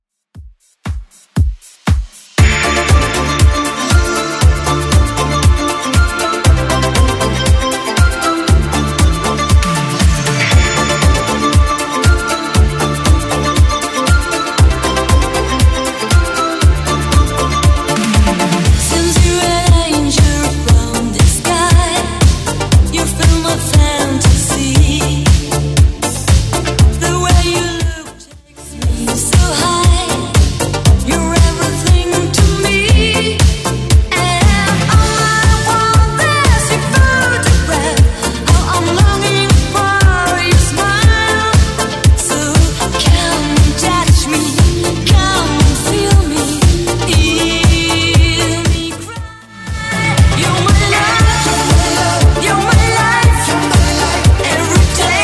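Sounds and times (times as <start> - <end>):
1980s drum loop: 0.1 - 28.0, 29.0 - 55.2.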